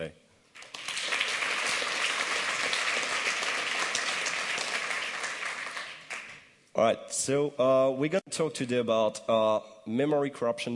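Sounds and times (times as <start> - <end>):
audience clapping: 0.5 - 6.5
speech: 6.8 - 10.7.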